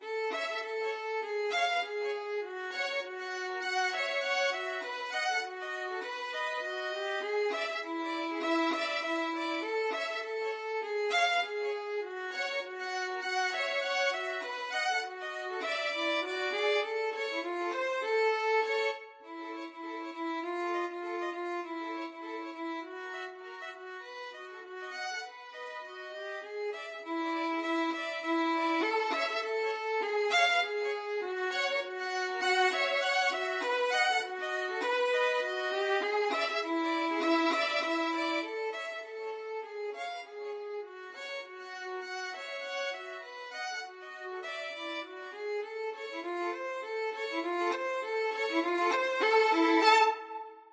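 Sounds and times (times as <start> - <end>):
rag violin duet: 0.0 - 50.7.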